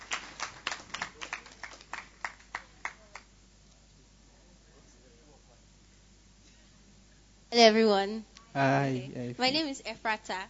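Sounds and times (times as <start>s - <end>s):
audience clapping: 0.0s - 3.3s
speech: 7.5s - 10.4s.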